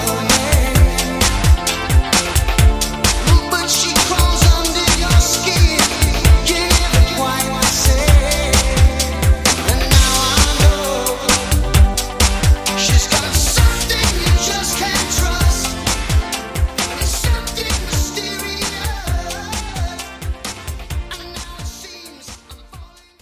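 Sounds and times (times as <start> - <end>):
1980s pop rock drums: 0.0 - 23.1.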